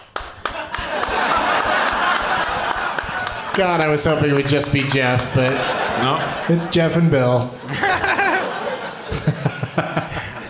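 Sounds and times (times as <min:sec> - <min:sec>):
scattered audience applause: 0:00.0 - 0:06.4
laughter: 0:00.4 - 0:10.4
speech: 0:03.6 - 0:07.9.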